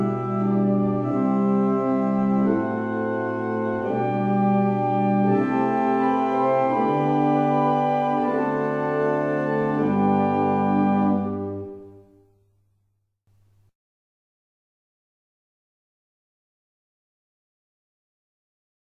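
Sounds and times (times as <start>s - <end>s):
barrel organs playing a hymn: 0.0s - 12.2s.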